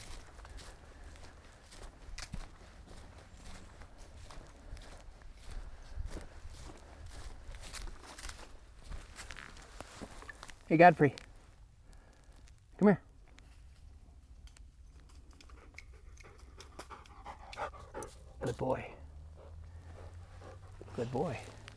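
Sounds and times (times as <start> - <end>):
footsteps on thick pine needles in a pine forest near Leatherwood Creek: 0.0 - 12.6, 18.5 - 21.7
speech: 10.7 - 11.2.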